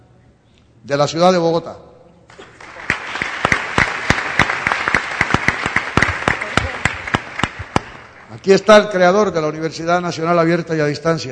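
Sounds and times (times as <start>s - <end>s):
speech: 0.8s - 1.8s, 8.4s - 11.3s
crowd applause: 2.3s - 8.7s.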